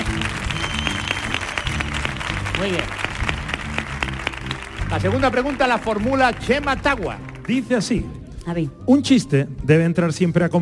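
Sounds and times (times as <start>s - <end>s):
audience applause: 0.0s - 7.6s
speech: 2.6s - 3.0s, 4.9s - 10.6s.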